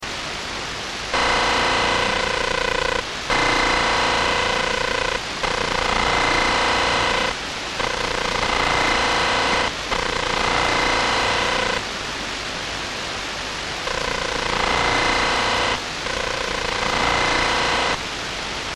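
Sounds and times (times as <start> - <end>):
noise: 0.0 - 18.7.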